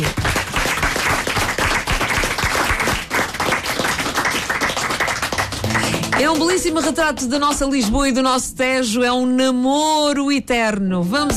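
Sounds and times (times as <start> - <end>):
audience applause: 0.0 - 6.9
speech: 6.4 - 11.3.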